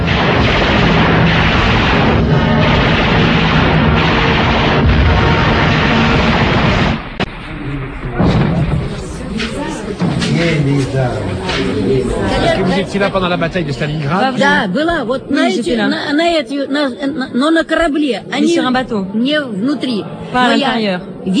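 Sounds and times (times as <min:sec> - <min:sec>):
explosions from a dive bomber attack: 0:00.0 - 0:13.8
speech: 0:12.8 - 0:21.3.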